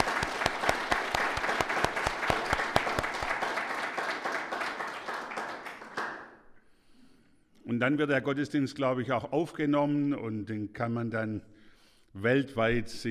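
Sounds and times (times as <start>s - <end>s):
audience applauding: 0.0s - 6.5s
speech: 7.8s - 11.5s, 12.2s - 13.0s.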